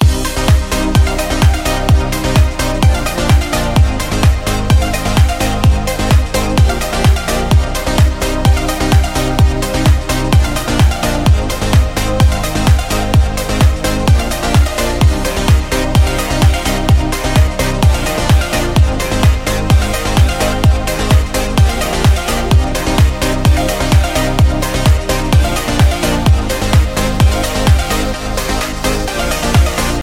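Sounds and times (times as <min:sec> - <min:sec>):
energetic dance party music loop: 0:00.0 - 0:30.0.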